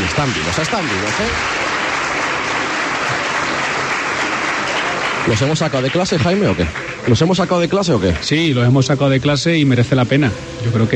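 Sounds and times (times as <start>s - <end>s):
students applauding: 0.0s - 8.8s
speech: 0.2s - 1.6s, 5.2s - 10.9s.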